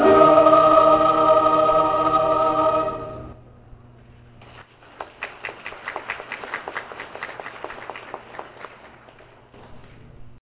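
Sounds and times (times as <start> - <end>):
choir singing: 0.0 - 3.4.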